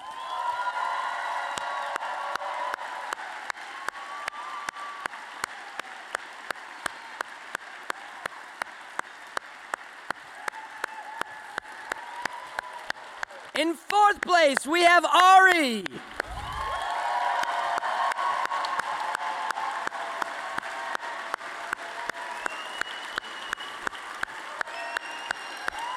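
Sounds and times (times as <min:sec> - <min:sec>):
whoops: 0:00.0 - 0:05.9, 0:10.4 - 0:12.9, 0:15.8 - 0:21.3, 0:24.5 - 0:25.9
audience applause for a contest winner: 0:00.0 - 0:25.9
speech: 0:13.6 - 0:16.1.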